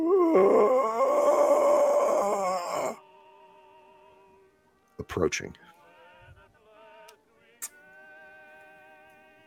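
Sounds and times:
zombie groaning sound effect: 0:00.0 - 0:03.0
speech: 0:05.1 - 0:05.7.

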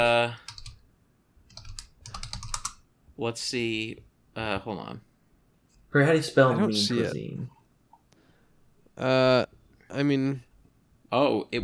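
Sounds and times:
speech: 0:00.0 - 0:00.5, 0:03.2 - 0:05.1, 0:05.9 - 0:07.6, 0:09.0 - 0:10.5, 0:11.1 - 0:11.6
typing on a computer keyboard while searching on eBay: 0:00.4 - 0:00.8, 0:01.5 - 0:02.8.

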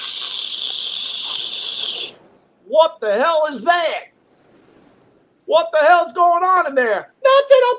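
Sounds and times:
voice imitating a whooshing stream of pee: 0:00.0 - 0:02.2
speech: 0:02.7 - 0:04.1, 0:05.5 - 0:07.7.

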